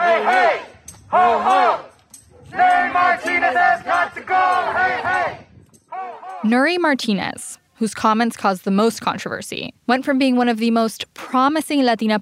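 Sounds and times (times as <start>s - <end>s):
protest crowd chanting in Los Angeles: 0.0s - 6.4s
speech: 6.4s - 12.1s.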